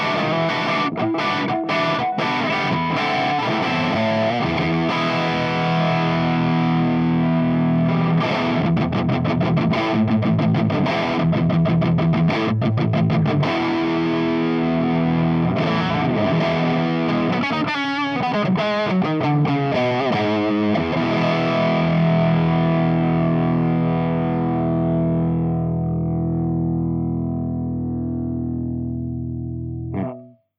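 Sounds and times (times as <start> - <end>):
overdriven electric guitar through V30 speaker: 0.0 - 30.5.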